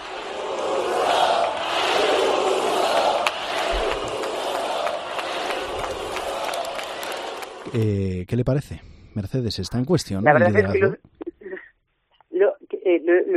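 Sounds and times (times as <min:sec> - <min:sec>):
crowd shouting and chanting a name: 0:00.0 - 0:07.9
speech: 0:07.8 - 0:11.1.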